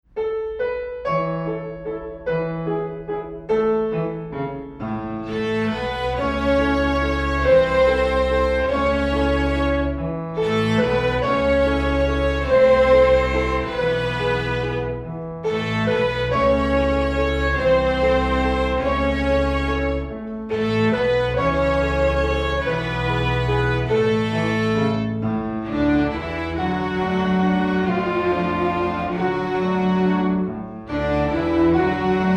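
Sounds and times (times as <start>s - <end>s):
cowboy waltz music: 0.1s - 32.3s.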